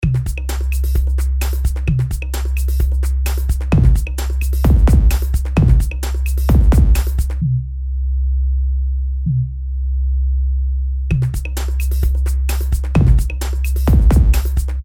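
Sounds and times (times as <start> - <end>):
reversed bass: 0.0 - 14.8.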